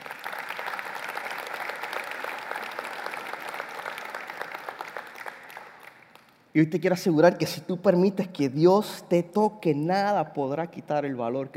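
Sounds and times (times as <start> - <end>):
audience applause: 0.0 - 6.3
speech: 6.6 - 11.5.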